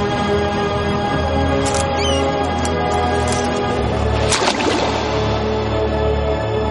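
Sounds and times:
ship and sea noise: 0:00.0 - 0:06.6
sabre thrown splashing into sea water: 0:04.2 - 0:05.9.

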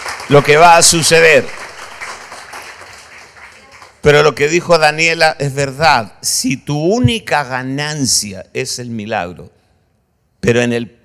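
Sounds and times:
audience clapping: 0:00.0 - 0:04.3
speech: 0:00.3 - 0:01.6, 0:04.0 - 0:09.6, 0:10.4 - 0:11.0.

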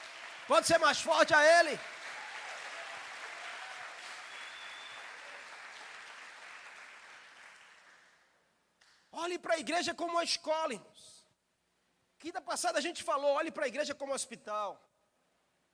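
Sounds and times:
audience applause: 0:00.0 - 0:08.2
speech: 0:00.5 - 0:02.0, 0:09.3 - 0:11.2, 0:12.2 - 0:14.9.

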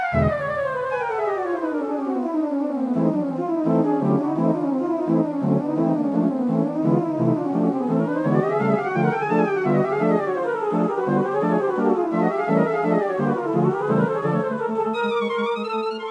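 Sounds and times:
video game arrangement of classical piece: 0:00.1 - 0:01.5, 0:02.9 - 0:16.0
steady pulsing bass notes: 0:00.2 - 0:00.7, 0:03.7 - 0:14.6.

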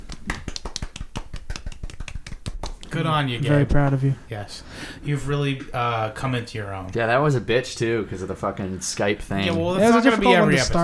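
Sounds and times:
soft golf clap: 0:00.0 - 0:02.9
speech: 0:02.9 - 0:10.8.

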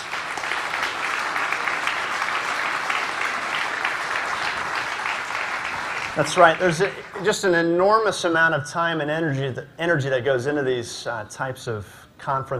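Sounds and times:
audience applause: 0:00.0 - 0:07.2
speech: 0:06.2 - 0:12.5.

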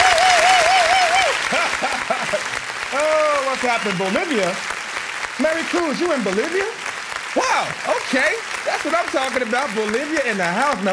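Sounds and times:
laughter: 0:00.0 - 0:03.4
audience applause: 0:00.0 - 0:10.9
speech: 0:03.7 - 0:04.7, 0:05.4 - 0:06.8, 0:07.4 - 0:10.9.

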